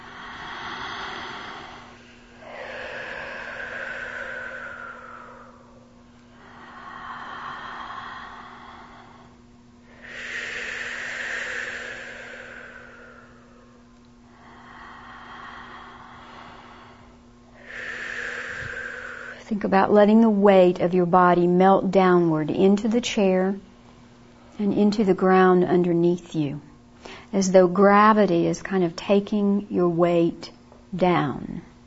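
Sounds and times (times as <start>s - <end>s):
slow diaphragmatic breathing: 0.0s - 19.6s, 26.9s - 27.4s
speech: 19.5s - 23.7s, 24.6s - 26.7s, 27.3s - 31.5s.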